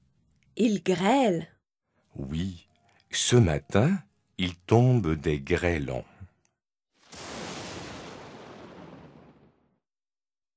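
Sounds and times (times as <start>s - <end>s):
speech: 0.6s - 1.5s, 2.2s - 6.1s
thunder: 7.0s - 9.8s.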